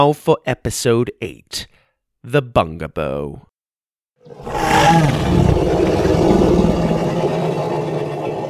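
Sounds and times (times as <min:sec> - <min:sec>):
speech: 0:00.0 - 0:03.5, 0:04.2 - 0:06.6
deep growling monster roar: 0:04.3 - 0:08.4.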